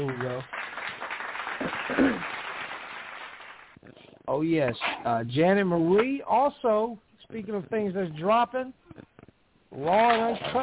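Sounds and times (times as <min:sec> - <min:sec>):
clapping sound effect of many hands: 0:00.0 - 0:03.8
speech: 0:04.4 - 0:08.8, 0:09.8 - 0:10.6.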